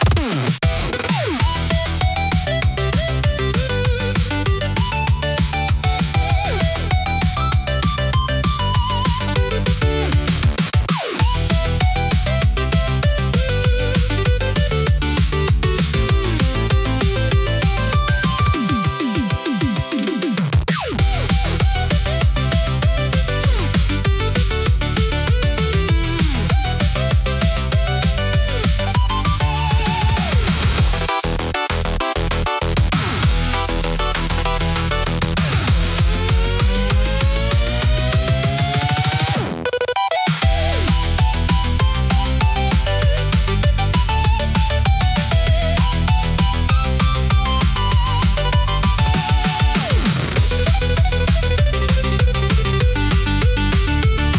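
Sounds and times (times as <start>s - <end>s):
retro chiptune game music: 0.0s - 54.3s.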